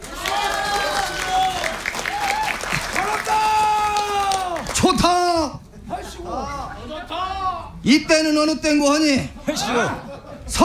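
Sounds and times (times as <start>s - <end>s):
crowd applause: 0.0s - 7.6s
laughter: 0.0s - 7.8s, 8.4s - 10.6s
voices calling out and cheering: 0.0s - 10.6s
speech: 7.8s - 10.6s.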